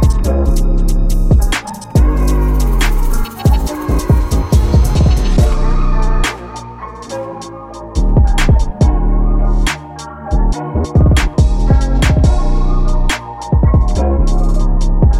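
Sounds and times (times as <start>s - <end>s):
music loops: 0.0s - 15.1s.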